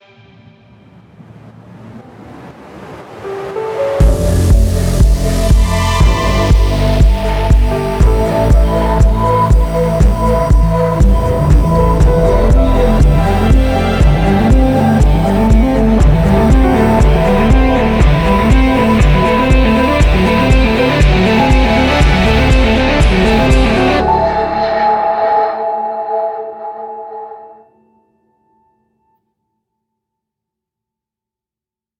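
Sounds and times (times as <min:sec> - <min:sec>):
hype music stinger: 0:03.2 - 0:27.6.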